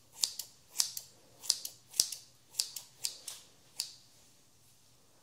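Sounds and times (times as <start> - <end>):
scissors snipping during a haircut: 0.1 - 3.9.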